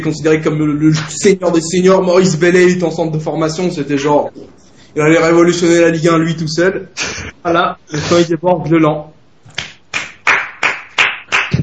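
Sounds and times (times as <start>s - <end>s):
speech: 0.0s - 9.1s
hands clapping: 1.0s - 1.2s, 3.9s - 4.2s, 9.5s - 11.6s.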